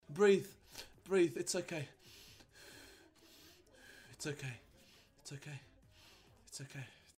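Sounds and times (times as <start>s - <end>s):
breathing: 0.6s - 1.0s, 1.9s - 5.2s, 5.8s - 6.4s.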